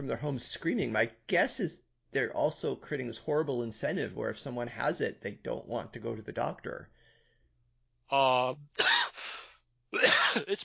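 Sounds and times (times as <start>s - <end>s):
speech: 0.0s - 6.9s, 8.1s - 9.0s, 9.9s - 10.6s
cough: 8.8s - 9.2s, 10.0s - 10.6s.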